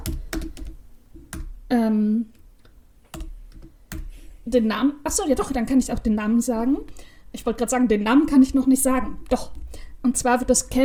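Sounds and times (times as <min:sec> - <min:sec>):
typing a note on a computer keyboard: 0:00.0 - 0:01.5, 0:03.1 - 0:04.1
speech: 0:01.7 - 0:02.4, 0:04.5 - 0:10.8.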